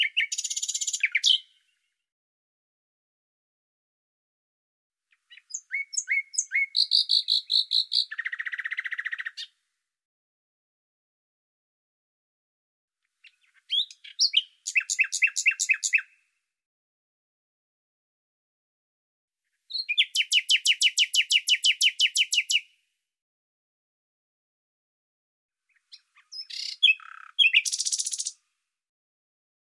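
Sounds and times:
bird song: 0:00.0 - 0:02.1, 0:05.1 - 0:09.7, 0:13.0 - 0:16.5, 0:19.7 - 0:22.8, 0:25.6 - 0:28.6.

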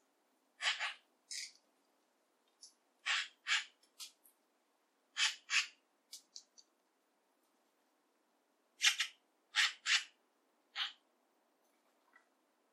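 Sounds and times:
Eurasian magpie rasping and chattering calls: 0:00.6 - 0:01.0, 0:03.0 - 0:03.8, 0:05.1 - 0:05.8, 0:08.8 - 0:11.0.

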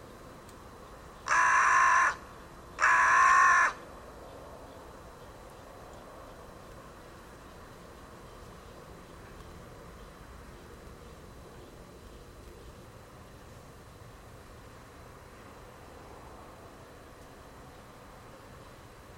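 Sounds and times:
bird giving harsh crow-like caws: 0:01.2 - 0:03.8.

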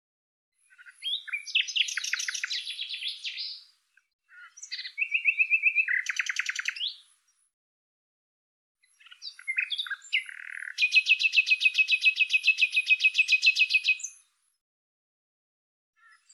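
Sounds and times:
bird singing chattering trills and short whistled notes: 0:00.6 - 0:03.7, 0:04.3 - 0:07.1, 0:08.8 - 0:14.3.

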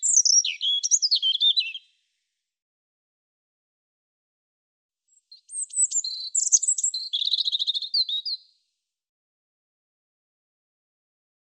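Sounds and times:
European robin singing: 0:00.0 - 0:02.0, 0:05.1 - 0:08.5.

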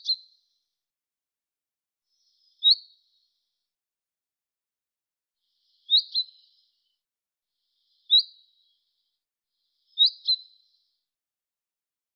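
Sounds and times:
bird giving short high chirps: 0:00.0 - 0:00.3, 0:02.2 - 0:03.0, 0:05.6 - 0:06.9, 0:07.7 - 0:09.0, 0:09.7 - 0:10.9.

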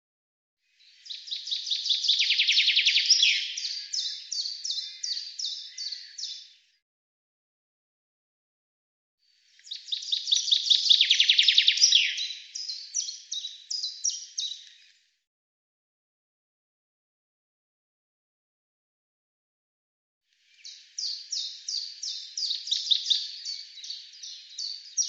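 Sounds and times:
bird song of fast descending trill of sharp notes: 0:00.7 - 0:06.8, 0:09.5 - 0:15.0, 0:20.5 - 0:25.0.

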